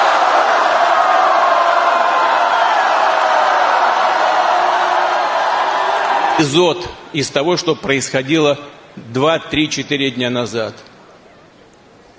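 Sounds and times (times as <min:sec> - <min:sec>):
crowd shouting Hurrah in unison on command: 0:00.0 - 0:06.4
speech: 0:06.4 - 0:10.9.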